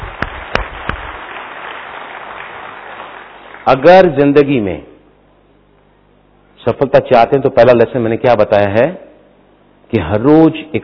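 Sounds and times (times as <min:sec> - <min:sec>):
audience clapping: 0:00.0 - 0:04.2
speech: 0:03.7 - 0:04.9, 0:06.6 - 0:09.1, 0:09.9 - 0:10.8.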